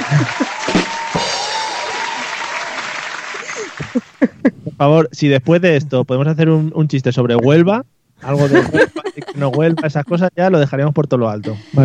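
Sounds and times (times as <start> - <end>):
laughter: 0.0 - 2.2, 3.1 - 4.7, 8.2 - 10.3
applause sound effect: 0.0 - 4.2
speech: 4.8 - 11.8.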